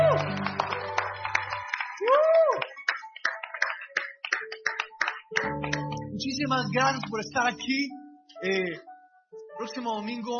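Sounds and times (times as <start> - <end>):
audience applause: 0.0 - 6.0
speech: 6.4 - 8.9, 9.6 - 10.3.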